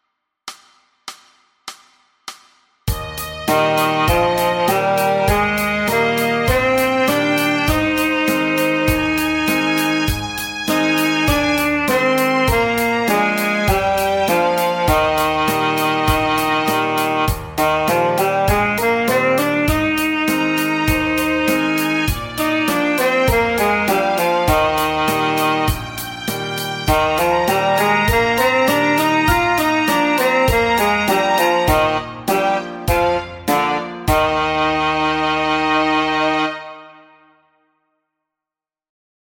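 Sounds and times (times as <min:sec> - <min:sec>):
saxophone playing a C scale in quarter notes: 0:02.9 - 0:37.3.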